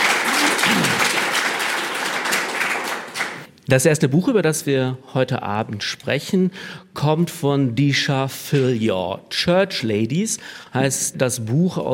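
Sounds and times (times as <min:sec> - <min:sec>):
audience applause: 0:00.0 - 0:03.5
speech: 0:03.7 - 0:11.9.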